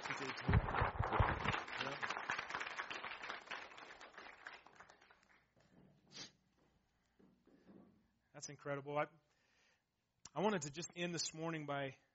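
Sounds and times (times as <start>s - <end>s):
audience applause: 0.0s - 5.4s
speech: 0.2s - 2.0s, 8.4s - 9.3s, 10.3s - 12.1s.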